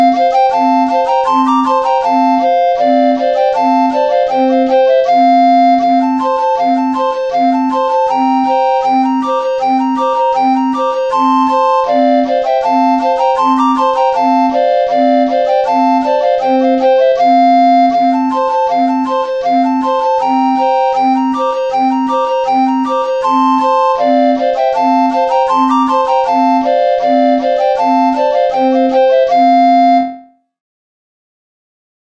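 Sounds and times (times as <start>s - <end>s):
flabiol pipe melody: 0.0s - 30.4s.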